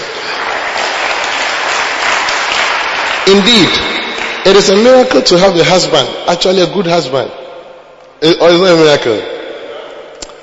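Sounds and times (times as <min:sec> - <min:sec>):
crowd applauding: 0:00.0 - 0:05.0
speech: 0:03.3 - 0:07.4, 0:08.2 - 0:09.3.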